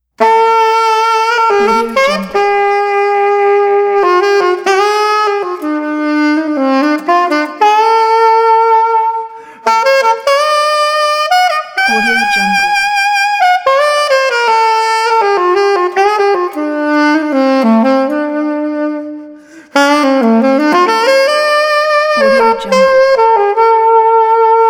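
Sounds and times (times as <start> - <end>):
saxophone solo: 0.2 - 24.6.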